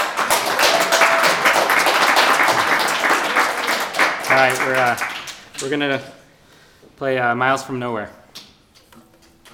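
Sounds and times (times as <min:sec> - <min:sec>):
audience applause: 0:00.0 - 0:05.8
speech: 0:04.3 - 0:06.2, 0:07.0 - 0:08.2.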